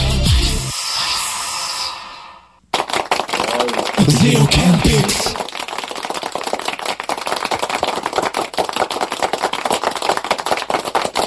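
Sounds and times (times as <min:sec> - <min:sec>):
audience applause: 0:02.7 - 0:11.2
speech: 0:04.0 - 0:05.4.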